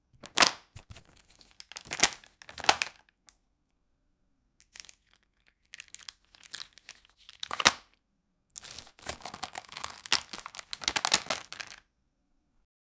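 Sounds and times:
opening small plastic cosmetics container: 0.2 - 3.0, 4.6 - 7.9, 8.6 - 11.8.

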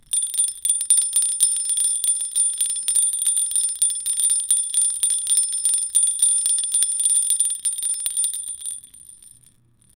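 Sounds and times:
christmas bells: 0.0 - 9.5.

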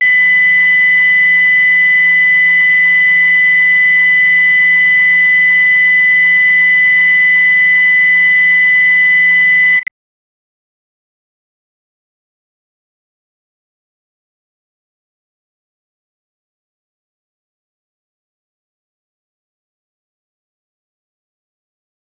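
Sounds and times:
Japanese emergency earthquake alert: 0.0 - 9.9.

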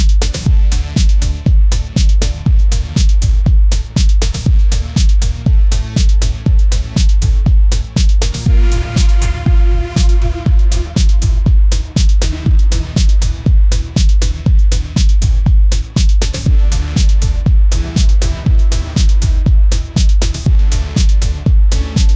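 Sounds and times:
disco music: 0.0 - 22.1.

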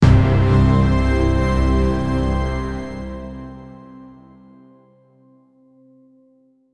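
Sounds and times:
motivating music track: 0.0 - 4.4.

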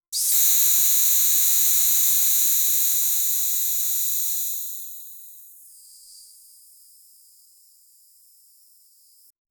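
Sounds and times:
compressed air: 0.2 - 5.4.

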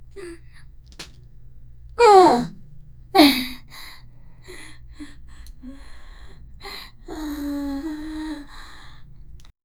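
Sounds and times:
young girl sighing: 0.2 - 0.6, 2.0 - 2.6, 3.2 - 9.4.

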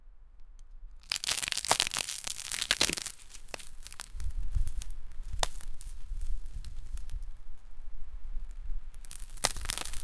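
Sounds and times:
soil cracking: 1.0 - 7.2, 9.1 - 10.0.

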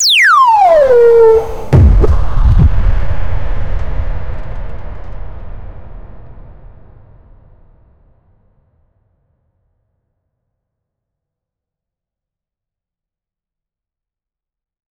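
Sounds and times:
nuclear blast explosion: 0.6 - 4.6.

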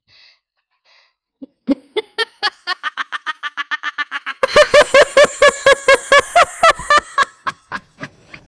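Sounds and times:
person laughing contagiously: 1.4 - 8.4.

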